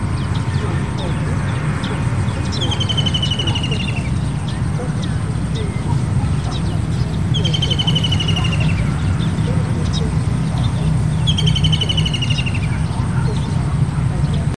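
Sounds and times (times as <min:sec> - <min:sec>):
ruddy kingfisher calling: 0:00.0 - 0:14.5.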